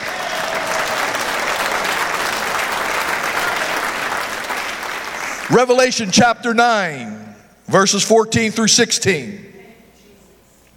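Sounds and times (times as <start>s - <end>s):
audience applauding: 0.0s - 5.8s
speech: 5.5s - 9.5s.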